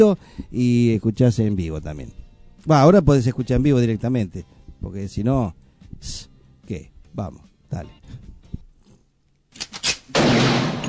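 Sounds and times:
speech: 0:00.0 - 0:08.3
gunshot sound effect: 0:10.1 - 0:10.8.

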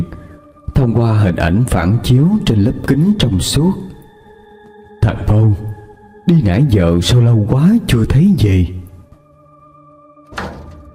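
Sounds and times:
speech: 0:00.8 - 0:03.9, 0:05.0 - 0:05.7, 0:06.3 - 0:08.8
door being forcefully pushed open: 0:10.3 - 0:10.9.

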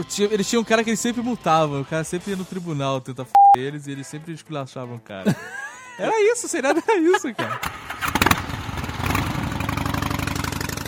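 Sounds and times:
speech: 0:00.0 - 0:08.1
laughter: 0:05.2 - 0:07.6
motorcycle engine starting and revving: 0:07.4 - 0:10.8.

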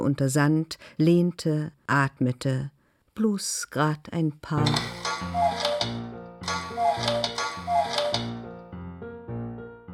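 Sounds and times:
speech: 0:00.0 - 0:06.0
cuckoo clock on a mantelpiece in a priest's house cooing: 0:04.6 - 0:08.5
sustained musical backing: 0:04.6 - 0:09.6.

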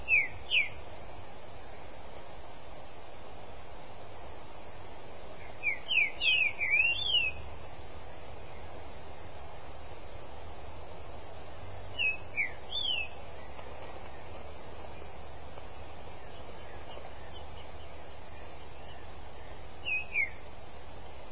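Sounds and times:
Green-winged Saltator song of bright whistled notes: 0:00.0 - 0:00.8, 0:05.4 - 0:07.5, 0:12.0 - 0:14.3, 0:16.2 - 0:20.4.

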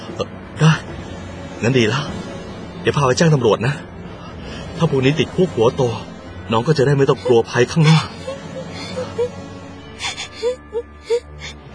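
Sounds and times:
speech: 0:00.2 - 0:00.8, 0:01.6 - 0:02.2, 0:02.8 - 0:03.9, 0:04.8 - 0:08.2
frightened child crying: 0:07.2 - 0:09.4, 0:10.0 - 0:11.6.

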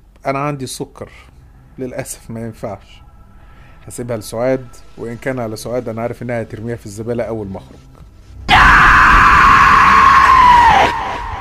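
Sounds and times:
speech: 0:00.2 - 0:03.0, 0:03.9 - 0:08.0
woman screaming: 0:08.5 - 0:11.3.

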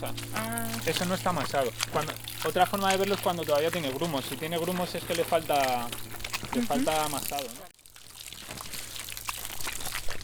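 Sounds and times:
speech: 0:00.0 - 0:07.7
low steady hum: 0:00.0 - 0:07.8
water pouring into earth mix: 0:00.0 - 0:10.2.

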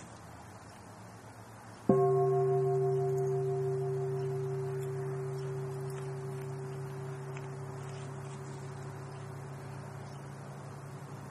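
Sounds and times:
mindfulness bell being struck: 0:01.9 - 0:10.3.

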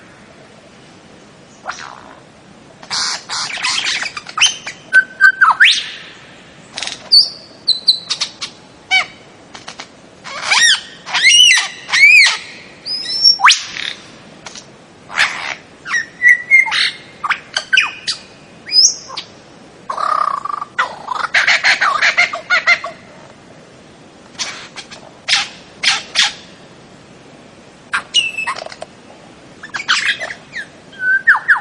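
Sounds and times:
bird singing: 0:02.9 - 0:09.2, 0:10.3 - 0:14.0, 0:15.2 - 0:23.0, 0:27.9 - 0:28.7, 0:29.6 - 0:31.5.

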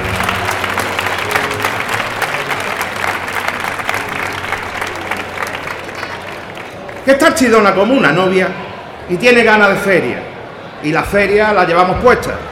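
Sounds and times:
crowd applause in a town square: 0:00.0 - 0:07.7
speech: 0:07.1 - 0:12.5.

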